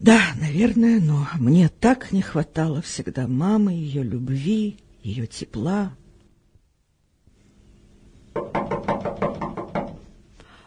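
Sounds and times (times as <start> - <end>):
speech: 0.0 - 6.0
firm knocking on a door: 8.3 - 10.1.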